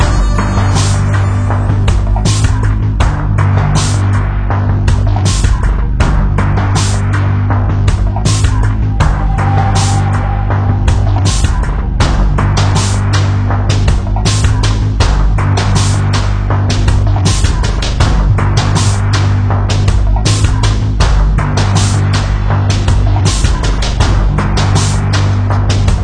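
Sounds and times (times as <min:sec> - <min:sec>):
tense music: 0:00.0 - 0:26.0.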